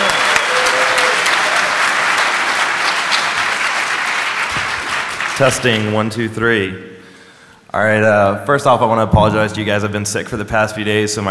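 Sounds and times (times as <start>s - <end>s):
DEF CON conference audience applauding a speaker: 0.0s - 5.9s
speech: 5.4s - 7.0s, 7.7s - 11.2s.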